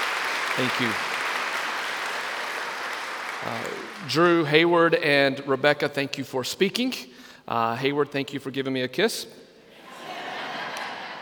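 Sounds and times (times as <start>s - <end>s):
crowd applauding: 0.0s - 4.8s
speech: 0.6s - 1.1s, 3.4s - 9.4s
laughter: 9.8s - 11.2s.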